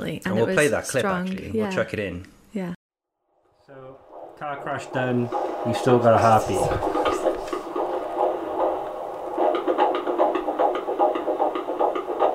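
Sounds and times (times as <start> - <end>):
speech: 0.0 - 2.8, 4.4 - 6.9
fetal heartbeat on a medical monitor: 3.8 - 12.3.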